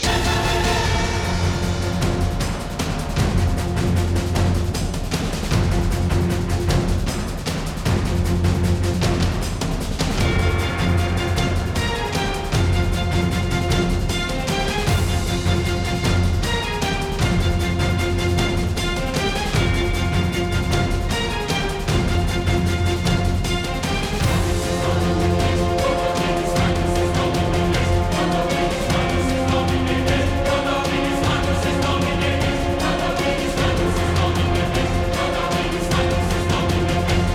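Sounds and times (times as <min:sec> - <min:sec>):
battle music: 0:00.0 - 0:37.3.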